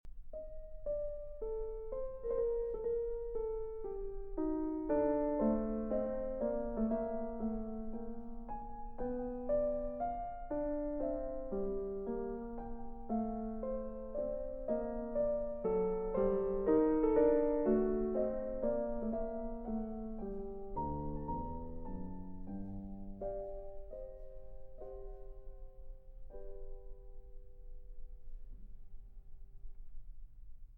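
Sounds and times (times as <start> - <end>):
Allegretto quasi andante in G minor: 0.3 - 28.1.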